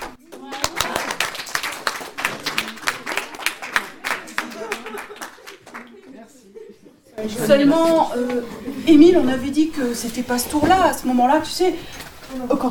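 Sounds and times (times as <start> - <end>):
audience applause: 0.0 - 6.2
laughter: 2.2 - 7.3
speech: 7.2 - 12.6.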